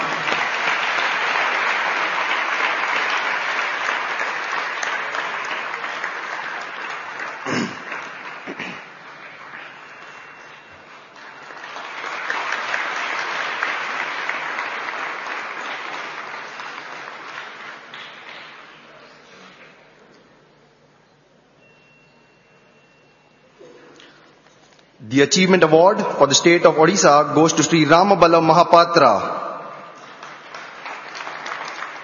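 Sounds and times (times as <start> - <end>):
audience applause at an achievement award ceremony: 0.0 - 19.5, 29.8 - 32.0
speech: 25.2 - 29.4.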